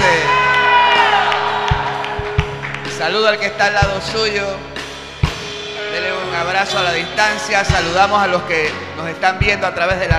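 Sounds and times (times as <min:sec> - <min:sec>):
audience shouting praise loudly: 0:00.0 - 0:02.9
speech: 0:03.1 - 0:04.8, 0:06.4 - 0:10.1.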